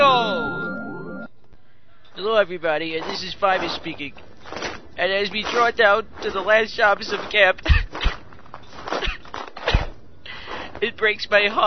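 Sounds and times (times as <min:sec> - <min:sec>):
speech: 0:02.2 - 0:07.8, 0:10.8 - 0:11.6
footsteps walking outdoors around a summer camp: 0:02.9 - 0:09.8.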